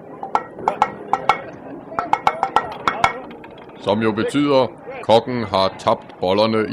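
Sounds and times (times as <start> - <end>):
metallic knocking rescue signal: 0.2 - 3.8
speech: 0.7 - 0.9, 3.8 - 6.7.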